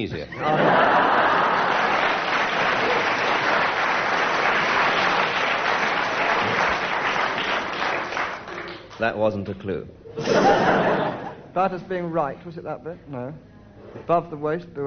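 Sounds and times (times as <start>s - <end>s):
speech: 0.0s - 1.2s, 9.0s - 14.8s
laughter: 0.1s - 3.7s, 10.2s - 11.5s
audience applause: 0.5s - 9.0s.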